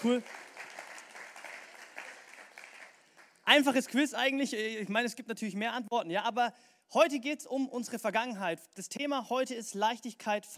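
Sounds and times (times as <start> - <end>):
speech: 0.0 - 0.4, 3.5 - 10.5
applause: 0.0 - 3.8.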